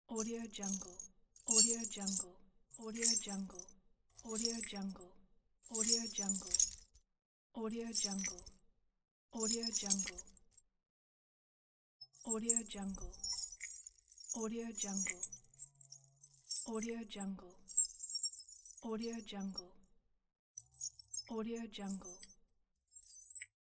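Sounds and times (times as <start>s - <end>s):
chain: 0.2s - 2.2s, 2.8s - 4.9s, 5.7s - 7.0s, 7.9s - 8.6s, 9.4s - 10.3s, 12.2s - 16.9s, 17.6s - 19.6s, 20.6s - 21.3s, 21.9s - 23.6s.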